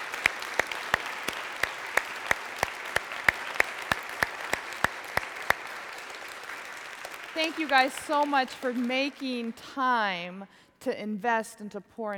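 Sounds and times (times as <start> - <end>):
audience applause: 0.0 - 9.6
speech: 7.4 - 12.1.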